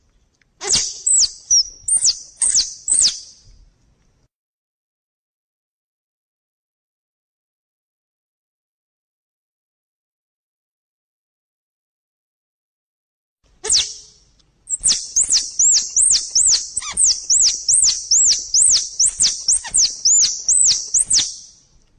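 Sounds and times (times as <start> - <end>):
squirrel chattering: 0.6 - 3.2, 14.7 - 21.3.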